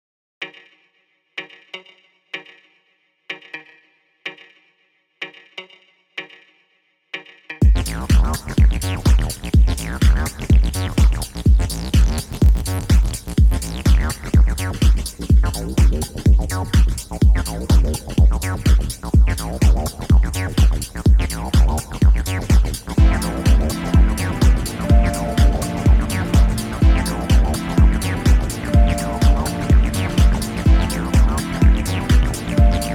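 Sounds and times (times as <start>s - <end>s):
house music: 7.6s - 32.9s.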